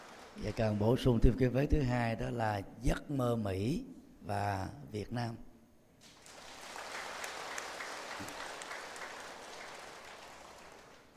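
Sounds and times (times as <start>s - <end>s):
warm audience applause: 0.0s - 1.0s, 6.0s - 11.1s
speech: 0.4s - 5.5s.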